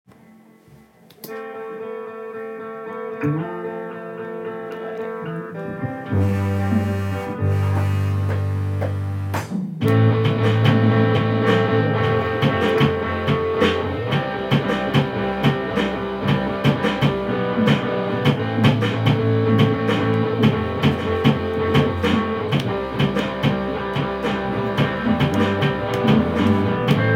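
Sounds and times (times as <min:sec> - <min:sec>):
drum piece: 0:05.7 - 0:27.1.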